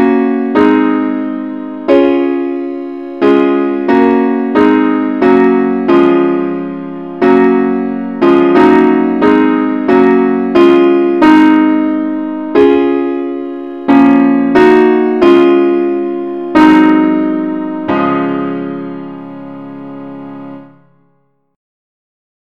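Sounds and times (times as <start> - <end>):
advanced musical accompaniment in C sharp: 0.0 - 21.0.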